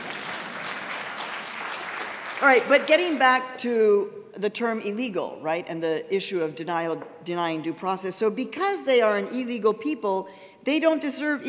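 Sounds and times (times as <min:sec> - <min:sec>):
audience applause: 0:00.0 - 0:02.6
speech: 0:02.4 - 0:11.4.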